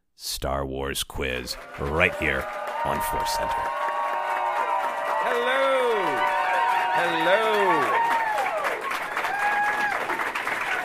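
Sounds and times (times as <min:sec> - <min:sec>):
speech: 0:00.2 - 0:03.8, 0:05.2 - 0:06.3, 0:07.0 - 0:08.1
audience applause: 0:01.4 - 0:10.8
high whoops and cheering voices: 0:01.6 - 0:10.8.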